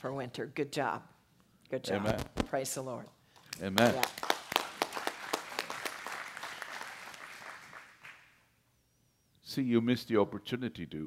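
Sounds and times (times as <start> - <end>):
speech: 0.0 - 4.3, 9.6 - 11.0
crowd applauding: 3.6 - 8.4.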